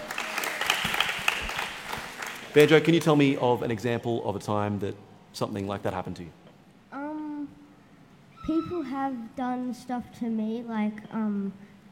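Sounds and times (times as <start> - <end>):
round of applause from a group: 0.0 - 3.4
speech: 2.6 - 6.4, 8.5 - 11.7.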